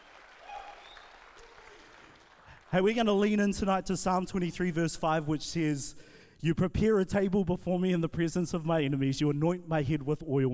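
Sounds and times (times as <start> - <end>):
crowd applause: 0.0 - 3.0
faint cheers and whistles: 0.3 - 2.2
speech: 2.7 - 10.5.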